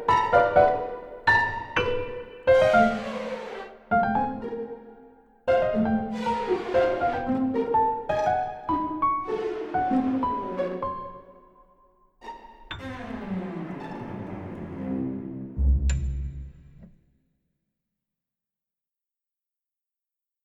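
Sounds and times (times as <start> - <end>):
string orchestra: 0.0 - 11.5, 12.2 - 16.4
piano: 0.0 - 17.0.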